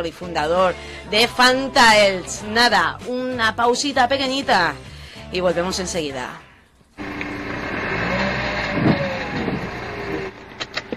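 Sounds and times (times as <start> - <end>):
speech: 0.0 - 6.4
car engine with a failing turbo droning with a whining tone: 7.0 - 10.9.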